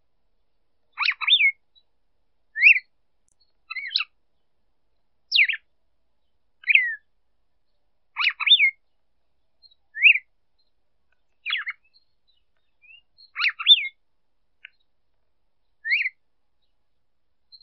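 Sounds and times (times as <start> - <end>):
female red-cowled cardinal calling: 0.9 - 1.9, 2.6 - 4.5, 5.3 - 7.1, 7.7 - 14.0, 15.6 - 16.8.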